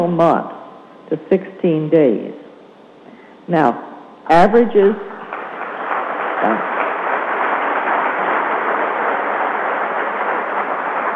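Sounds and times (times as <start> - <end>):
speech: 0.0 - 0.5, 1.1 - 2.4, 3.5 - 5.1, 6.4 - 6.8
audience clapping: 5.2 - 11.1.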